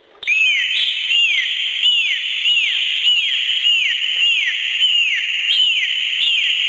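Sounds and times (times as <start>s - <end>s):
common bottlenose dolphin whistles: 0.2s - 6.6s.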